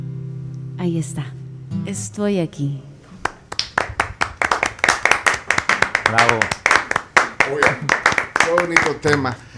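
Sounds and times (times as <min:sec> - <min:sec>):
speech: 0:00.8 - 0:02.9, 0:06.1 - 0:06.6, 0:07.5 - 0:09.5
audience hands clapping after song: 0:03.2 - 0:09.5.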